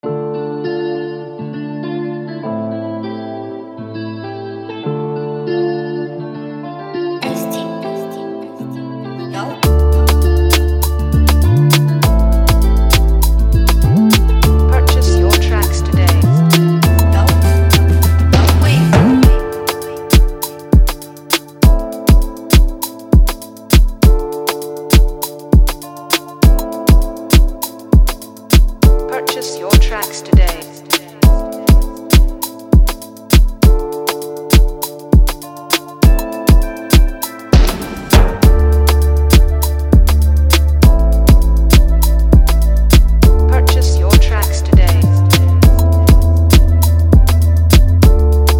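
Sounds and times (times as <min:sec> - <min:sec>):
beat: 0:09.6 - 0:24.3, 0:24.9 - 0:48.5.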